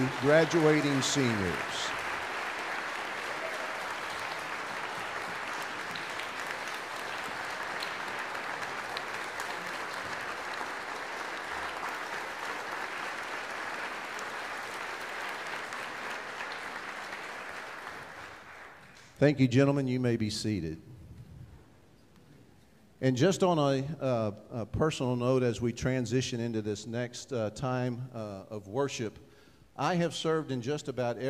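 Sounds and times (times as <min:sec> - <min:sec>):
speech: 0:00.0 - 0:02.0, 0:19.2 - 0:20.9, 0:23.0 - 0:31.2
large crowd applause: 0:00.0 - 0:19.1.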